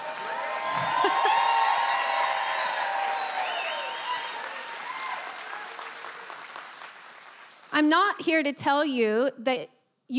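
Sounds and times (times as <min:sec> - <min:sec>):
audience cheering: 0:00.0 - 0:07.3
speech: 0:07.8 - 0:10.1.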